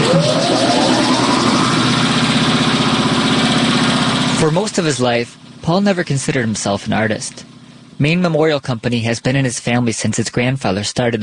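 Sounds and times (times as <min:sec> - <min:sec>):
broad hissing noise: 0:00.0 - 0:04.5
sandblasting machine starting up and running: 0:00.0 - 0:05.6
speech: 0:04.5 - 0:11.2.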